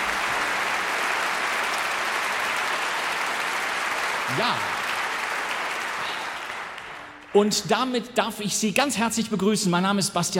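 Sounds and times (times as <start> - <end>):
audience applause for an orchestra in a broadcast hall: 0.0 - 8.0
speech: 4.3 - 4.8, 7.3 - 10.3.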